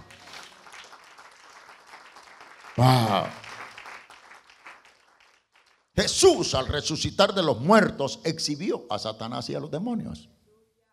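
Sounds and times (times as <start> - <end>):
audience applause: 0.0 - 5.8
speech: 2.8 - 3.4, 6.0 - 10.4.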